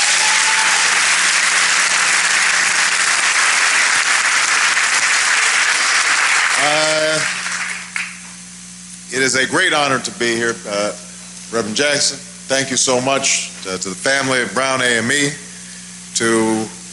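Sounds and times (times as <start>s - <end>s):
audience applause: 0.0s - 8.2s
speech: 9.2s - 15.4s, 16.2s - 16.7s.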